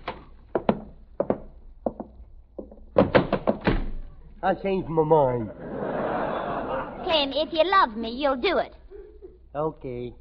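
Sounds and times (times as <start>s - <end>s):
wooden door being opened with thunks and rattles: 2.6s - 4.0s
speech: 4.4s - 5.7s, 7.1s - 8.8s, 9.5s - 10.1s
laughter: 5.3s - 7.5s, 8.8s - 9.5s.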